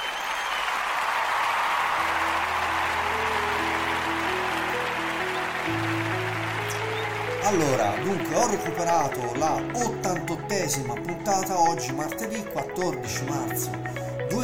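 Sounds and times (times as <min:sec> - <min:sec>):
crowd applause: 0:00.0 - 0:11.6
outro tune with low musical tones: 0:01.9 - 0:14.4
speech: 0:07.5 - 0:14.4.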